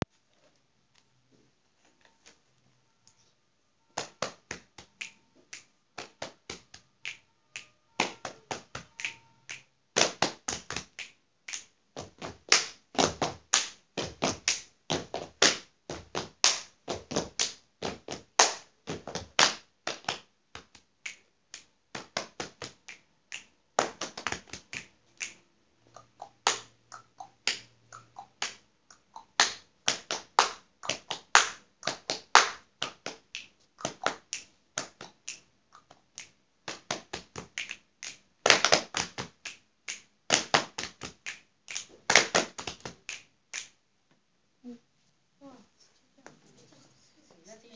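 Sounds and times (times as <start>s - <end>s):
body percussion by small groups: 4.0s - 43.8s.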